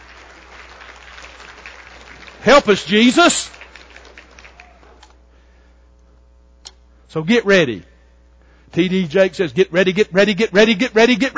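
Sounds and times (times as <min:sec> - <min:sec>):
audience clapping hands: 0:00.0 - 0:05.1
speech: 0:02.4 - 0:03.6, 0:07.1 - 0:07.9, 0:08.7 - 0:11.3.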